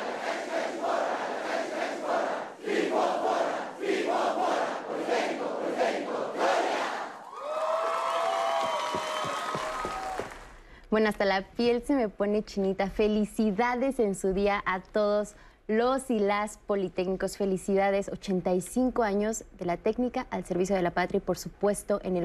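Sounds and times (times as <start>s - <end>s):
crowd shouting a chant: 0.0s - 7.2s
scattered cheering: 7.2s - 10.5s
speech: 10.9s - 22.2s.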